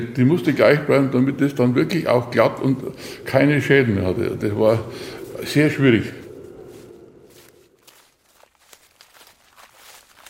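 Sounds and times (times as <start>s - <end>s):
speech: 0.0s - 6.2s
soft footsteps on a forest trail over gnarled roots: 5.2s - 10.2s.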